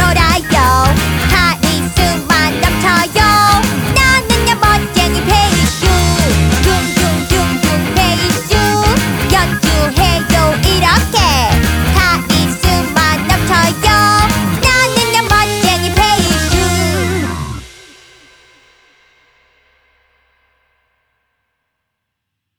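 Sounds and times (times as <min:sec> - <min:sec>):
bass guitar song: 0:00.0 - 0:17.9.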